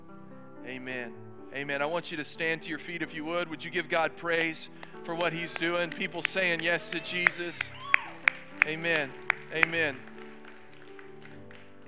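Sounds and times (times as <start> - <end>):
steady held musical chord: 0.0 - 11.8
speech: 0.7 - 7.9, 8.6 - 10.1
audience golf clapping: 4.4 - 11.8.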